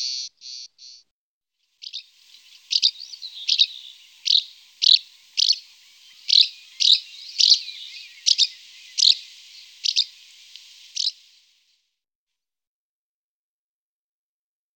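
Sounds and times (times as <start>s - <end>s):
house martin calling: 1.8s - 11.5s.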